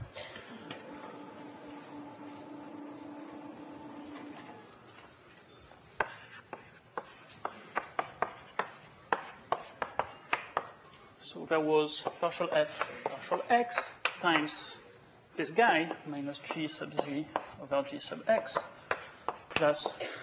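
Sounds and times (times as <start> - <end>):
faint steady hum: 0.0 - 5.8
writing on a board during a maths lecture: 6.0 - 10.8, 11.8 - 14.7, 15.6 - 20.0
speech: 11.3 - 14.8, 15.4 - 18.7, 19.6 - 20.2.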